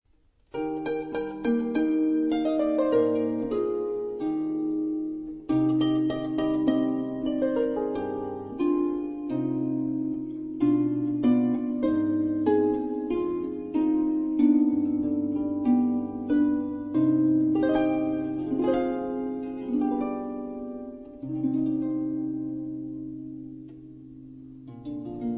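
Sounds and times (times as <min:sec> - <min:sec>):
string instruments playing: 0:00.5 - 0:25.3.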